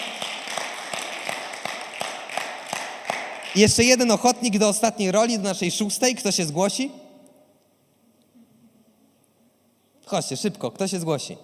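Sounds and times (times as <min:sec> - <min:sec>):
audience applause: 0:00.0 - 0:03.7
speech: 0:03.6 - 0:07.0, 0:10.1 - 0:11.4.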